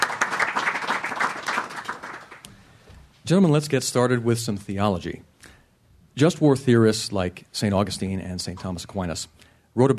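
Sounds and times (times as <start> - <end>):
audience applause at the Commonwealth Club for a panel: 0.0 - 2.4
speech: 3.3 - 5.3, 6.2 - 9.9.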